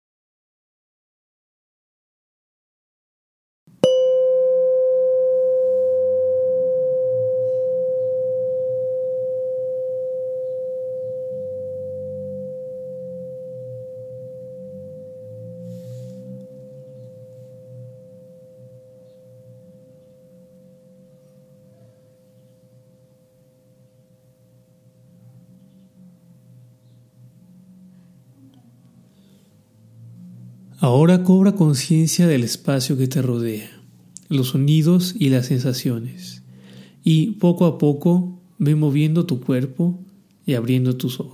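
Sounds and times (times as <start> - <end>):
meditation bell ringing: 3.8 - 25.0
speech: 30.8 - 36.4, 37.0 - 41.3.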